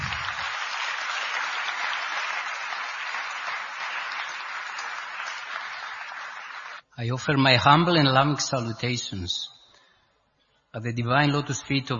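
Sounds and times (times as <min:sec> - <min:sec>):
audience applause: 0:00.0 - 0:06.8
speech: 0:07.0 - 0:09.6, 0:10.8 - 0:11.9.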